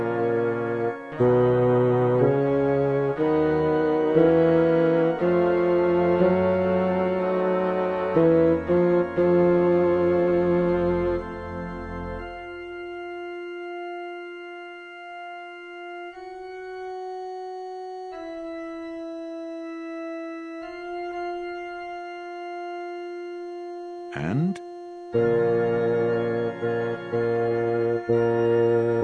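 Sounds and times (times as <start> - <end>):
bass: 0.0 - 17.2, 24.1 - 29.0.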